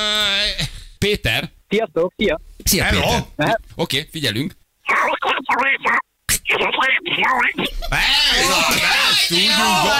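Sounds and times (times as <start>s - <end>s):
speech: 1.0s - 9.9s
person imitating Donald Duck cartoon voice: 4.9s - 7.6s.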